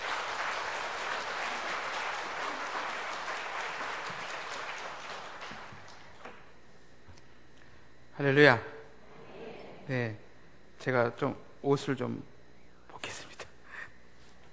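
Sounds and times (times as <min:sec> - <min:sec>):
audience applause welcoming a speaker: 0:00.0 - 0:06.2
speech: 0:08.2 - 0:08.7, 0:09.9 - 0:10.2, 0:10.8 - 0:12.3.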